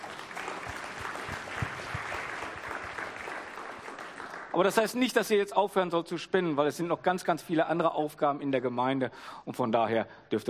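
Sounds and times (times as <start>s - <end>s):
crowd clapping: 0.0s - 5.2s
speech: 4.6s - 10.4s.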